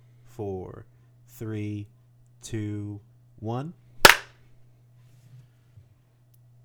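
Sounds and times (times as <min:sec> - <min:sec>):
speech: 0:00.4 - 0:03.8
sync hand clap: 0:04.1 - 0:04.3.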